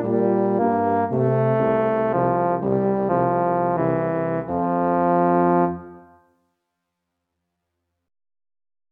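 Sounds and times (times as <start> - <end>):
courtly dance for euphonium and tuba: 0.0 - 6.2.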